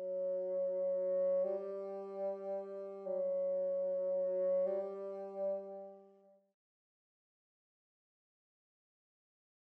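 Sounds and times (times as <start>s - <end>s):
bassoon: 0.0s - 6.3s.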